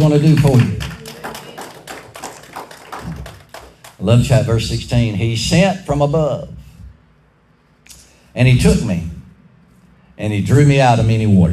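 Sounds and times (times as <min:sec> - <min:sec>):
speech: 0:00.0 - 0:00.9, 0:04.0 - 0:06.5, 0:08.4 - 0:09.1, 0:10.2 - 0:11.5
audience clapping: 0:00.0 - 0:04.4.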